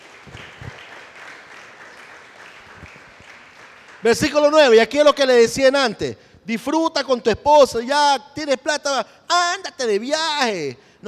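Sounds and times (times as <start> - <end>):
audience applause: 0.0 - 4.4
speech: 4.0 - 11.0.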